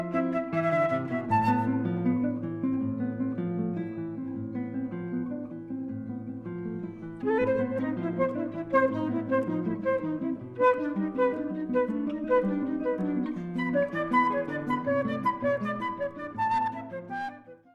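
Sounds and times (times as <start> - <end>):
flute: 0.0 - 2.5, 7.2 - 17.7
guitar: 0.0 - 17.7.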